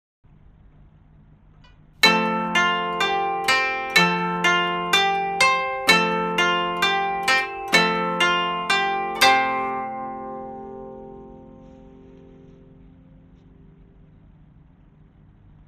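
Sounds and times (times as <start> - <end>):
koto: 2.0 - 14.4.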